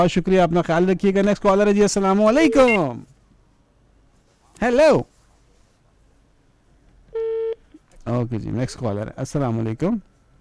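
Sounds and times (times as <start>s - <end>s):
speech: 0.0s - 3.1s, 4.6s - 5.1s, 8.1s - 10.1s
telephone line electronic beep on a radio call-in show: 2.4s - 2.8s.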